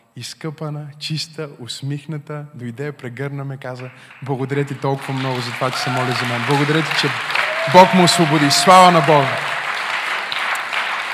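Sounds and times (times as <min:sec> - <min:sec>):
speech: 0:00.2 - 0:09.5
audience applauding: 0:04.2 - 0:11.1.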